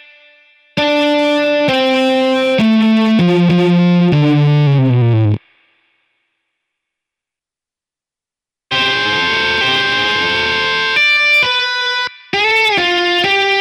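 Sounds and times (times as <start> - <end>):
instrumental solo: 0.8 - 5.4, 8.7 - 13.5.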